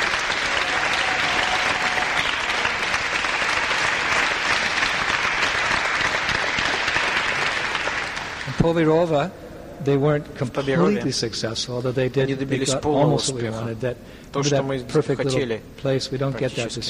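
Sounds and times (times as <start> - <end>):
audience applause: 0.0 - 8.7
speech: 8.6 - 16.8.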